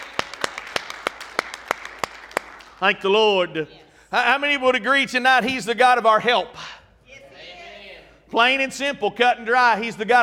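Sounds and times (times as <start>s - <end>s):
audience hand clapping: 0.0s - 3.0s
speech: 2.8s - 6.6s, 8.3s - 10.2s.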